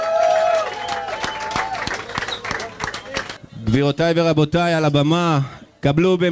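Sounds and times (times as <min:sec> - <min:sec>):
audience applause: 0:00.0 - 0:03.4
speech: 0:03.7 - 0:06.2.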